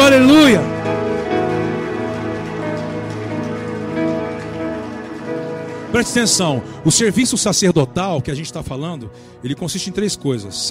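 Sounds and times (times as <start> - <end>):
audience applauding: 0.0 - 7.4
speech: 6.0 - 10.6.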